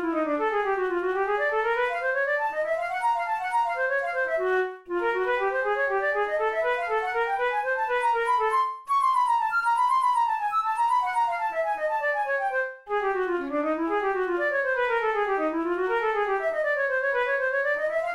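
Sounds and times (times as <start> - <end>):
solo flute studies: 0.1 - 18.1.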